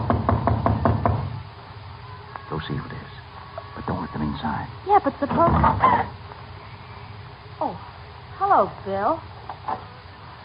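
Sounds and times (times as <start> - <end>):
knocking on a door: 0.0 - 1.4
low hum: 0.0 - 10.4
speech: 2.6 - 3.1, 4.1 - 6.2, 7.6 - 9.9.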